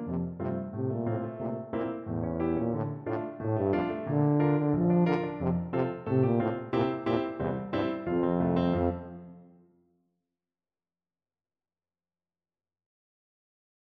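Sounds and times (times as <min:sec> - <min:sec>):
tuba playing: 0:00.0 - 0:09.5.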